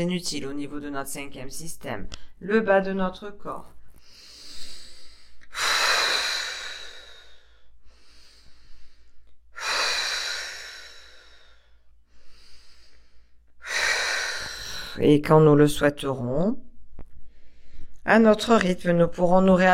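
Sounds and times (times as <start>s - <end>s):
speech: 0.0s - 4.2s, 15.0s - 16.7s, 18.0s - 19.7s
slow deep breathing during a relaxation exercise: 3.9s - 15.0s, 17.1s - 18.0s.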